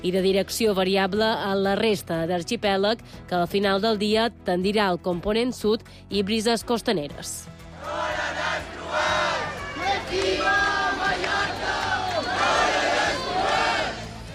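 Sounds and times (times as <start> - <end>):
speech: 0.0 - 9.3
crowd chanting and shouting at a protest against mass tourism in Palma: 7.7 - 14.3.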